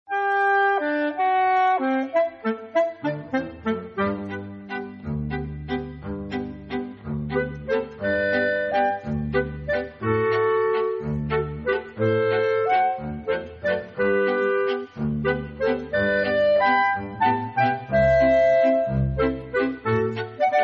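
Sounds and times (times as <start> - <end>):
Kapelle band playing a waltz: 0.2 - 20.6.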